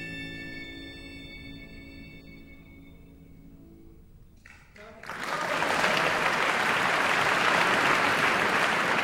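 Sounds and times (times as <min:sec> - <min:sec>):
audience applause at the Jerusalem International Chamber Music Festival: 0:04.5 - 0:08.9.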